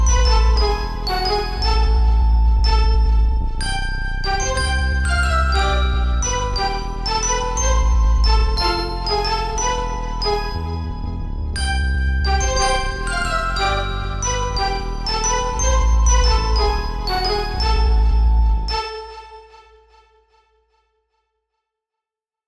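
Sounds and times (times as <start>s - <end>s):
glockenspiel: 0.0s - 19.8s
strings playing: 0.0s - 20.3s.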